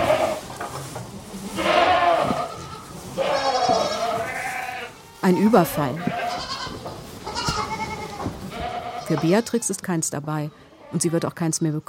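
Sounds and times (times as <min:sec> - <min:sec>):
goats and lambs bleating in a herd: 0:00.0 - 0:00.6, 0:01.3 - 0:09.8
speech: 0:05.3 - 0:06.2, 0:09.1 - 0:11.8.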